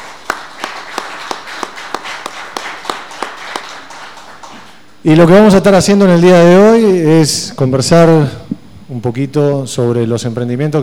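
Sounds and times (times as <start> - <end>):
audience applause: 0.0 - 4.8
sharp evenly spaced claps: 0.0 - 4.9
speech: 5.0 - 10.8.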